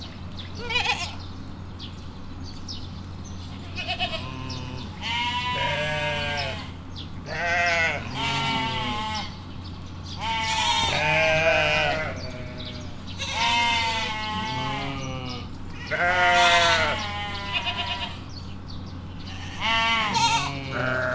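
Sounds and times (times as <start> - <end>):
goat kid bleating at Miskolc zoo: 0.6 - 1.2, 3.5 - 9.4, 10.2 - 18.3, 19.3 - 21.1.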